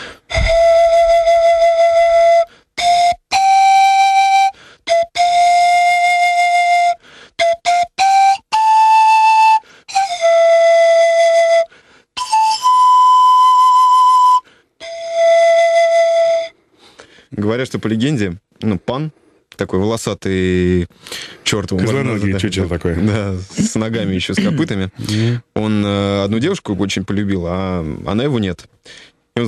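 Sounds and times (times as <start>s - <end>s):
pan flute playing a slow solo melody: 0.0s - 16.7s
speech: 17.4s - 29.4s.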